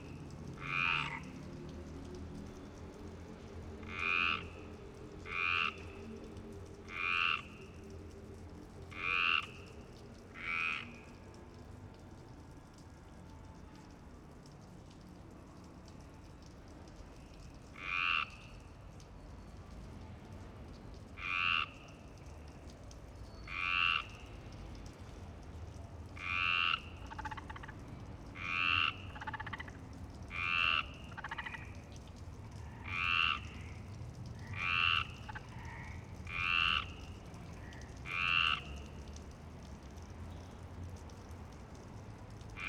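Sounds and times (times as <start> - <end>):
frog croaking: 0.6 - 1.5, 3.8 - 6.2, 6.8 - 7.8, 8.9 - 11.1, 17.8 - 18.5, 21.2 - 22.0, 23.5 - 24.3, 26.2 - 32.0, 32.6 - 39.1.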